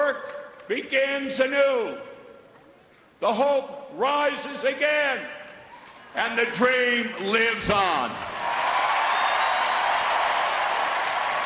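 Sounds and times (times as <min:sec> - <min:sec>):
speech: 0:00.7 - 0:02.1, 0:03.2 - 0:05.4, 0:06.1 - 0:08.3
large convention crowd cheering and applauding: 0:08.2 - 0:11.4.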